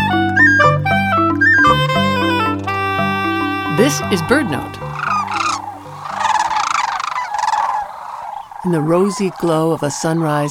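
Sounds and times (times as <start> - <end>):
faint low musical tone: 0.0 - 6.7
pair of sandhill cranes giving a unison call: 3.2 - 10.4
speech: 3.8 - 4.9, 8.6 - 10.4.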